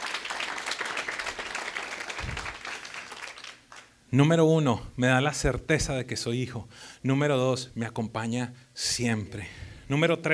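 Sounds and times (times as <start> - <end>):
audience applause: 0.0 - 3.9
speech: 4.1 - 10.3.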